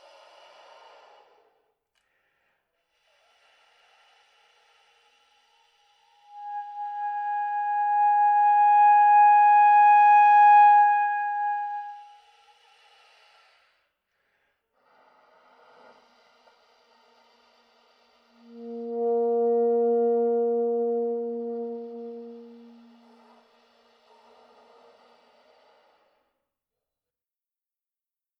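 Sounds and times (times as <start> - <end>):
soprano saxophone shifting from air to tone on single notes: 6.2 - 12.2, 18.3 - 23.3.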